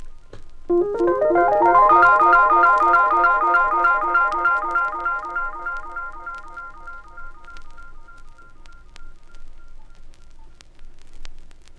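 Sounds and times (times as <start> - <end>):
Rhodes electric piano through Echoplex tape echo: 0.7 - 7.8.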